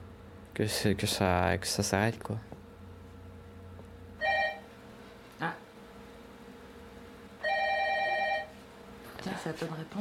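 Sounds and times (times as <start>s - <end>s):
speech: 0.6s - 2.6s, 9.5s - 10.0s
electronic telephone ringtone: 4.2s - 4.6s, 7.4s - 8.5s.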